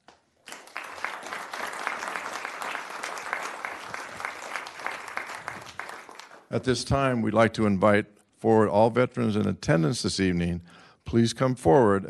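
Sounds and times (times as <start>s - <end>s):
audience applause for veterans: 0.4s - 6.5s
speech: 6.5s - 12.0s.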